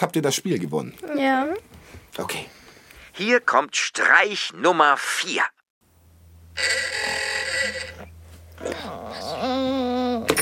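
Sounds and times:
speech: 0:00.0 - 0:02.6, 0:03.2 - 0:05.6, 0:06.6 - 0:07.0
alarm clock ringing: 0:06.6 - 0:08.1
person snoring: 0:07.0 - 0:10.3.

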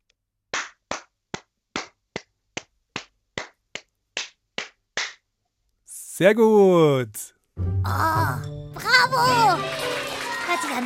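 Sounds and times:
hands clapping a rhythm: 0:00.5 - 0:05.3, 0:09.2 - 0:10.8
speech: 0:06.2 - 0:09.9, 0:10.5 - 0:10.8.

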